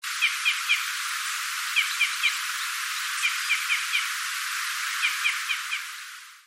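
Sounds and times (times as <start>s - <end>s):
steady hiss: 0.0s - 6.4s
red crossbill calling: 0.2s - 1.0s, 1.7s - 4.2s, 4.9s - 6.0s.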